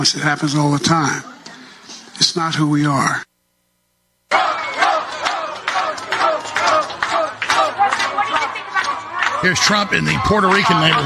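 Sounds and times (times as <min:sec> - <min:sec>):
speech: 0:00.0 - 0:01.3, 0:02.2 - 0:03.3, 0:09.4 - 0:11.0
crowd howling and screaming: 0:04.3 - 0:11.0.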